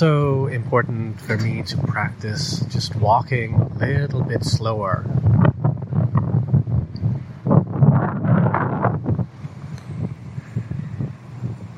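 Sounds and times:
speech: 0:00.0 - 0:05.4
wind buffeting a microphone outdoors: 0:00.0 - 0:11.7.

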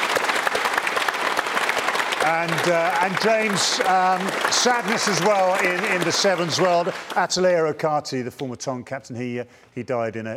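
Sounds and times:
audience applause: 0:00.0 - 0:07.9
speech: 0:02.2 - 0:10.3.

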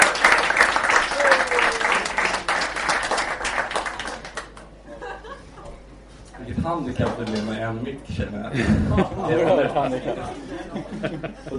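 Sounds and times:
applause: 0:00.0 - 0:04.8
laughter: 0:04.9 - 0:05.8, 0:08.5 - 0:11.5
speech: 0:06.7 - 0:11.5.

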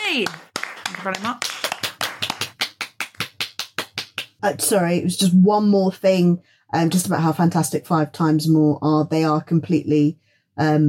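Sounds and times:
event audience clapping after a talk: 0:00.0 - 0:04.4
speech: 0:00.1 - 0:01.5, 0:04.4 - 0:10.8.

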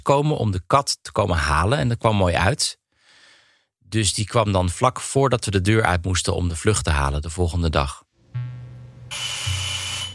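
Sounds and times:
speech: 0:00.0 - 0:02.8, 0:03.9 - 0:08.0
doorbell low electric hum: 0:08.2 - 0:09.2
harsh buzzing doorbell ring: 0:09.1 - 0:10.1.

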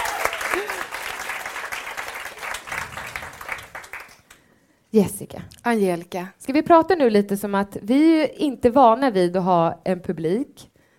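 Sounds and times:
audience applause: 0:00.0 - 0:04.4
speech: 0:04.9 - 0:10.7.

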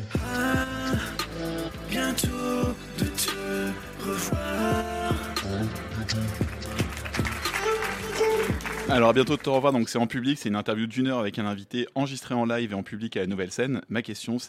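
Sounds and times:
theme music for a French interview podcast: 0:00.0 - 0:10.1
speech: 0:02.2 - 0:03.4, 0:08.9 - 0:14.4.

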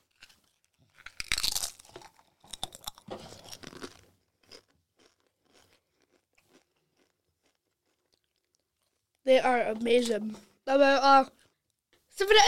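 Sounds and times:
rhythmic chewing: 0:00.0 - 0:09.2
tortilla crisps being bitten with sharp crunches: 0:00.0 - 0:09.2
speech: 0:09.3 - 0:11.4, 0:12.2 - 0:12.4.

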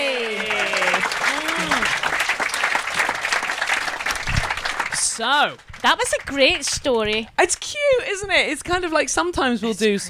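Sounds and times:
audience clapping for two guests: 0:00.0 - 0:07.3
speech: 0:05.2 - 0:10.0.

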